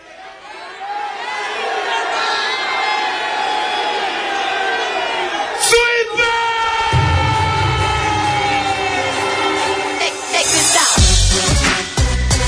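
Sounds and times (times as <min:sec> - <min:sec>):
crowd cheering at a rap battle final in Seville: 0:00.0 - 0:12.3.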